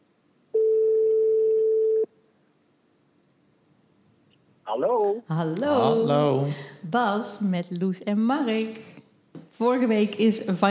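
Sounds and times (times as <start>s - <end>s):
telephone ringing: 0.6s - 2.1s
speech: 4.8s - 8.9s, 9.6s - 10.6s.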